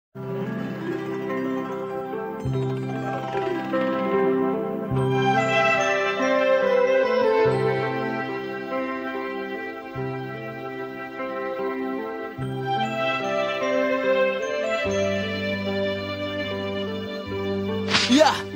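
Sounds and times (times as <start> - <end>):
soothing background music: 0.2 - 18.5.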